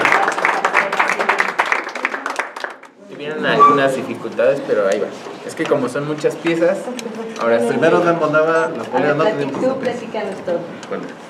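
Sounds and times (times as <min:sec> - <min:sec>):
small group applauding a team after a machine-building activity: 0:00.0 - 0:03.1
speech: 0:03.4 - 0:11.2.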